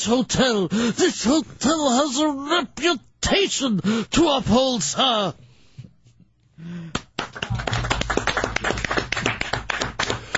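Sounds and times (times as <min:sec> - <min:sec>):
speech: 0:00.0 - 0:05.4
one person clapping hands: 0:06.9 - 0:10.3.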